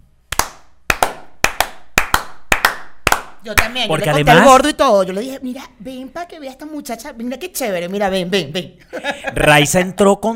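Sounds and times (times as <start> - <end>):
applause, hands clapping: 0.3 - 3.8
speech: 3.4 - 10.3
laughter: 8.8 - 9.6.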